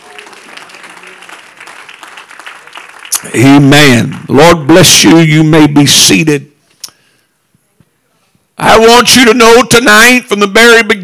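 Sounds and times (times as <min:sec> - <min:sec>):
audience clapping hands: 0:00.0 - 0:04.6
speech: 0:03.2 - 0:06.5, 0:08.7 - 0:11.0.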